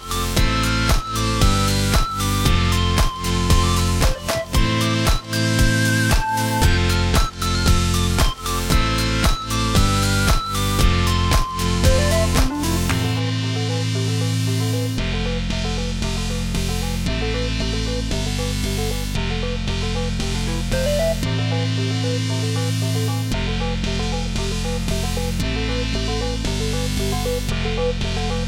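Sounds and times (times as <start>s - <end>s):
jolly bubblegum pop music: 0.0s - 28.4s.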